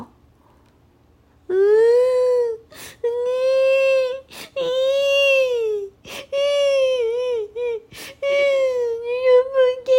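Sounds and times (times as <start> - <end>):
young child crying in a children's story: 1.5 - 9.8.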